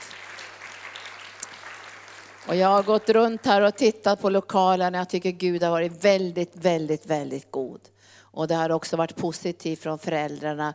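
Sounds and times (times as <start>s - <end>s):
audience applauding: 0.0s - 3.7s
speech: 2.4s - 10.7s.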